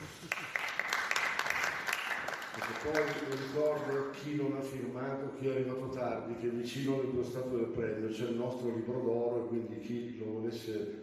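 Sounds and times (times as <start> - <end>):
audience applause: 0.0 - 4.2
speech: 2.8 - 11.0.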